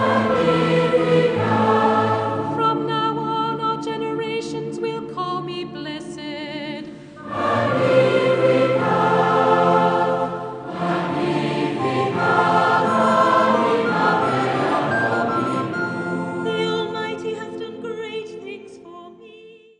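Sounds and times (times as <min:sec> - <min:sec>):
choral music: 0:00.0 - 0:04.2, 0:06.8 - 0:18.4.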